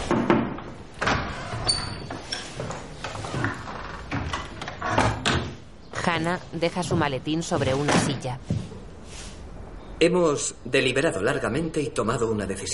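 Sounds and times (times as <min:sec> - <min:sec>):
office door opening and closing: 0:00.0 - 0:05.6
door hinge or latch squeak: 0:01.3 - 0:02.6
speech: 0:06.2 - 0:08.6, 0:10.0 - 0:12.7.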